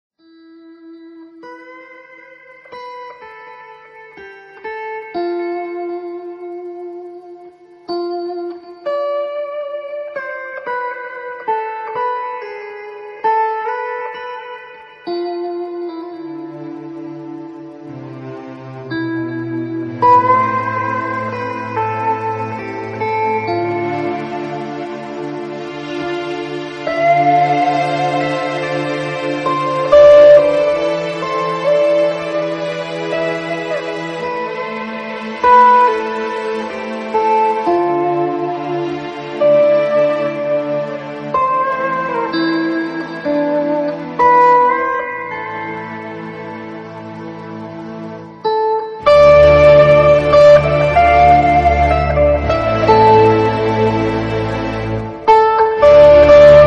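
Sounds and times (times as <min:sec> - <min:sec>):
solo guitar: 0:00.0 - 0:56.6.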